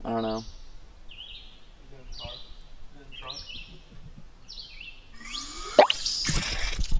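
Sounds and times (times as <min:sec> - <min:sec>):
birds: 0:00.0 - 0:06.9
pump: 0:05.2 - 0:06.9.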